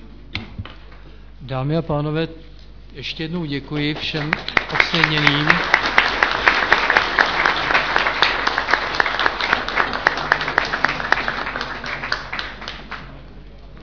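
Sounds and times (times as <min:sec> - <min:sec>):
speech: 0:01.5 - 0:05.8
audience applause: 0:04.0 - 0:13.2.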